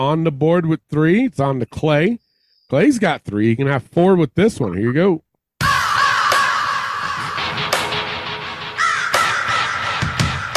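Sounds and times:
speech: 0:00.0 - 0:05.2
raven cawing: 0:05.6 - 0:10.5.

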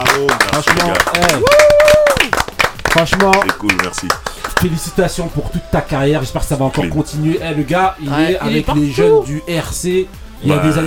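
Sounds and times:
quick steady hand clapping: 0:00.0 - 0:04.8
speech: 0:00.3 - 0:01.9, 0:02.9 - 0:10.8
person whooping: 0:01.2 - 0:02.4.

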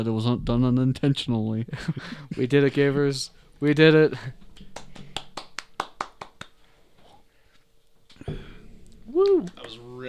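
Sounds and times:
speech: 0:00.0 - 0:04.4
one person clapping: 0:04.7 - 0:06.6.

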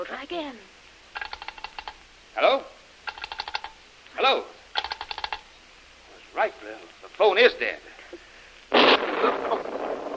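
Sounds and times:
speech: 0:00.0 - 0:01.4, 0:02.4 - 0:02.7, 0:04.2 - 0:04.6, 0:06.4 - 0:08.2
heavy explosion: 0:08.7 - 0:10.1.

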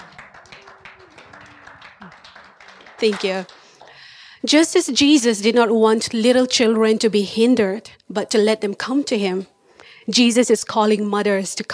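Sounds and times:
audience applause: 0:00.0 - 0:04.2
speech: 0:03.0 - 0:03.6, 0:04.4 - 0:09.5, 0:10.1 - 0:11.7.

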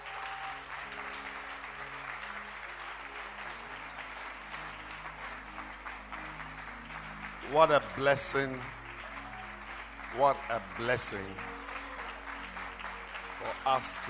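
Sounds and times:
audience clapping: 0:00.0 - 0:14.0
speech: 0:07.5 - 0:08.8, 0:10.2 - 0:11.6, 0:13.4 - 0:14.0.

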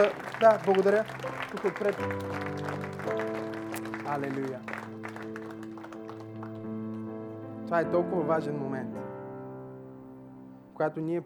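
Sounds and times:
speech: 0:00.0 - 0:03.4, 0:04.1 - 0:05.0, 0:07.7 - 0:09.0, 0:10.8 - 0:11.2
audience applause: 0:00.0 - 0:07.0.

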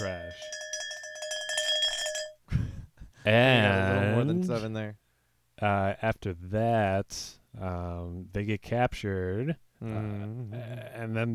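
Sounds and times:
metallic bell struck rapidly: 0:00.0 - 0:02.4
speech: 0:03.2 - 0:05.0, 0:05.6 - 0:11.3.

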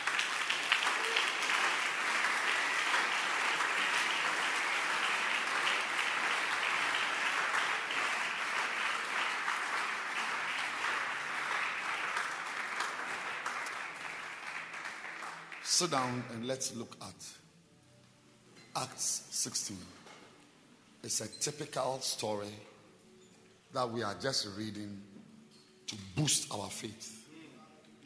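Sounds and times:
audience clapping: 0:00.0 - 0:16.5
speech: 0:15.7 - 0:17.4, 0:18.8 - 0:20.0, 0:21.0 - 0:22.7, 0:23.7 - 0:25.1, 0:25.9 - 0:27.2.

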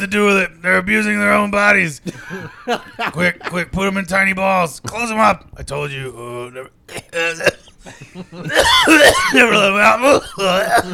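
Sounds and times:
speech: 0:00.0 - 0:10.9
laughter: 0:02.1 - 0:03.7, 0:07.8 - 0:10.9
person coughing: 0:06.9 - 0:10.9.

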